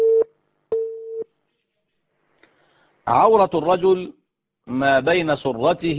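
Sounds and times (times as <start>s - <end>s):
telephone line tones of an incoming call: 0.0s - 1.2s
speech: 3.1s - 5.9s.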